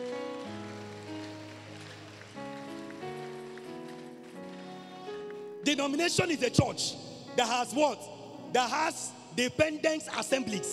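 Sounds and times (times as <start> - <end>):
audience clapping hands: 0.0 - 5.5
speech: 5.7 - 10.7.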